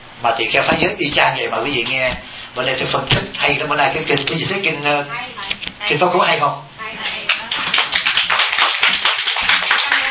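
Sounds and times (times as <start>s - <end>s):
speech: 0.2s - 7.1s
audience clapping: 7.3s - 10.0s.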